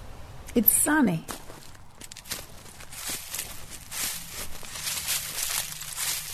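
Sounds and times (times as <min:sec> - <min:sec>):
speech: 0:00.6 - 0:01.3
footsteps crunching through dry leaves in Boise, Idaho: 0:01.3 - 0:06.3.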